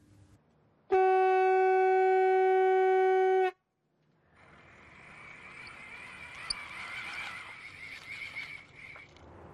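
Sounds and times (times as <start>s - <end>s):
buzzy warning horn: 0.9s - 3.6s.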